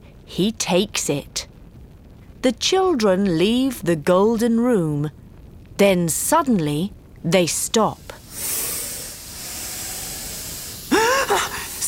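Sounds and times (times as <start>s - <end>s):
speech: 0.3s - 1.5s, 2.4s - 5.2s, 5.8s - 8.6s
snakes hissing: 8.0s - 11.8s.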